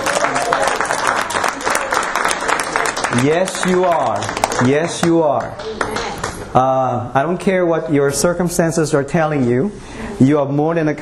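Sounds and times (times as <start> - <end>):
audience clapping: 0.0 - 6.5
speech: 3.1 - 11.0.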